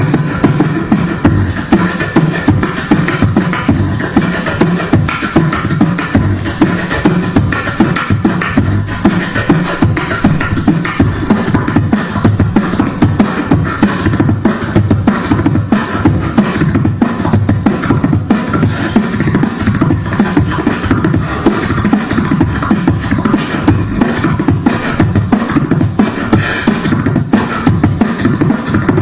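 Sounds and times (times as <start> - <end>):
beatbox: 0.0 - 29.0.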